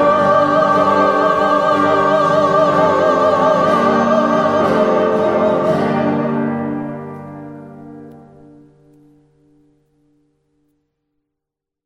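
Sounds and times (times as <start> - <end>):
Easter alleluia singing: 0.0 - 8.0.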